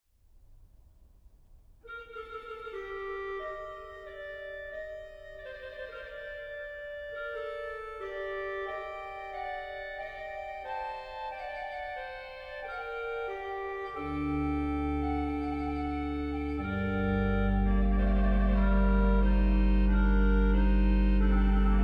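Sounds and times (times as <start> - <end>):
organ piece with cromorne stop en taille: 1.9 - 21.8.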